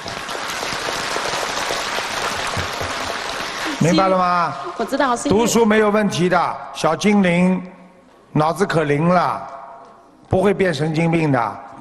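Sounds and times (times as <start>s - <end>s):
audience applause: 0.0s - 5.0s
speech: 3.8s - 9.6s, 10.3s - 11.7s.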